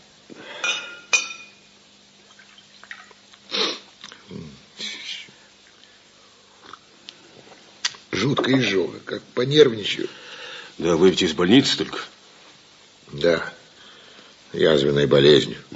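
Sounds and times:
glass clinks: 0.6 - 1.7
water poured from a carafe into a glass: 2.3 - 3.2
speech: 8.2 - 10.2, 10.8 - 12.1, 14.6 - 15.7.

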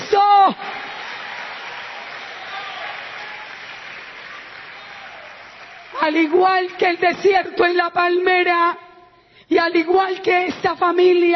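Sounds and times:
audience applauding: 0.6 - 6.4
speech: 6.1 - 8.8, 9.5 - 11.3.

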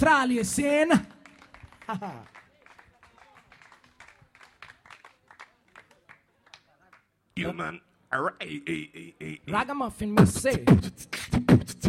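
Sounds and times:
speech: 0.0 - 1.2, 1.9 - 2.4, 7.4 - 11.8
audience applause: 1.2 - 7.0.

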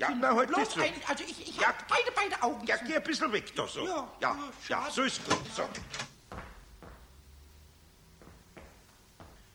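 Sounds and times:
speech: 0.0 - 6.0
door opening: 5.1 - 6.2.

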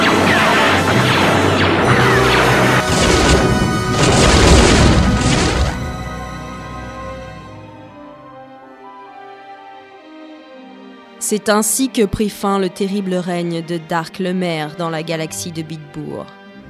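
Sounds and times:
explosion blowing up a machine: 0.0 - 6.0
speech: 11.3 - 16.4.

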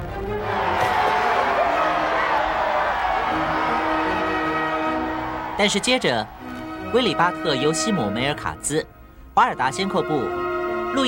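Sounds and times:
about 100,000 garrison troops at a fortress cheering at news of peace: 0.0 - 7.8
speech: 5.6 - 11.0.

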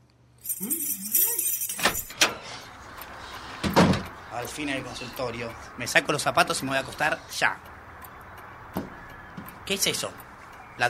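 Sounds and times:
speech: 0.4 - 1.3, 4.4 - 7.7, 9.7 - 10.2
keys jangling: 0.4 - 2.3.

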